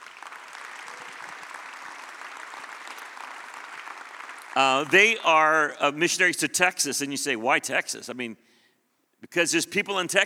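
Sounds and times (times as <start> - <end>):
audience at a church service applauding to welcome missionaries: 0.0 - 5.6
speech: 4.6 - 8.5, 9.2 - 10.2.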